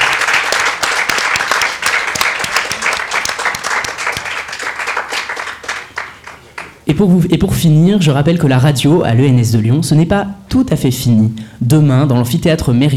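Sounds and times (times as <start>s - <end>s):
audience applause: 0.0s - 6.8s
speech: 6.9s - 12.9s.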